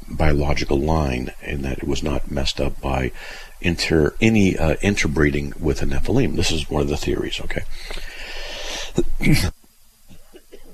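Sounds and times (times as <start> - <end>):
speech: 0.2 - 8.1, 9.0 - 9.5
cough: 10.1 - 10.7.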